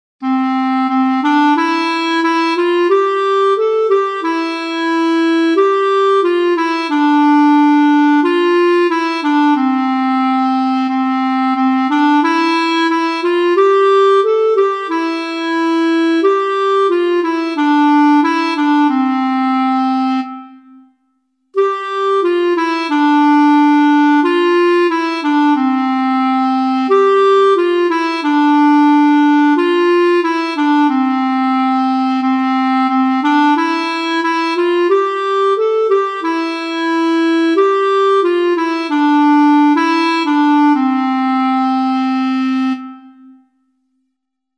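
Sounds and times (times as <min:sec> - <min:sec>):
clarinet: 0:00.2 - 0:43.7.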